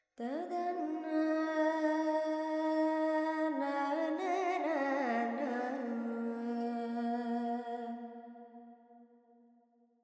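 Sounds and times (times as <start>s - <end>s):
Carnatic female vocal alaps in Dorian: 0.2s - 8.0s.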